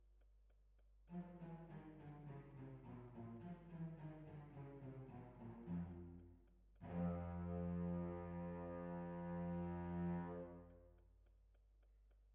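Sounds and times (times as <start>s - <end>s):
violins: 1.1s - 10.9s.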